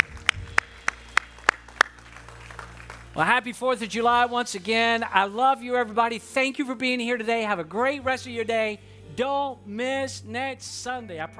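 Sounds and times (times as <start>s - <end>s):
audience clapping hands: 0.0s - 4.2s
speech: 3.2s - 11.3s.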